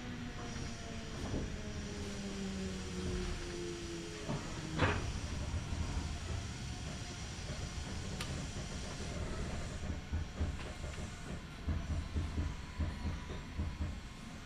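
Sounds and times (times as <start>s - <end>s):
Kintetsu Nagoya Line local train interior rumble and hiss: 0.0s - 14.4s
rhythmic rail clatter: 2.9s - 14.4s.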